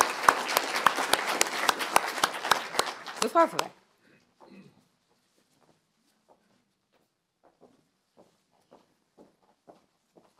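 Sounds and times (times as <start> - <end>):
applause: 0.0 - 3.8
speech: 3.2 - 3.8.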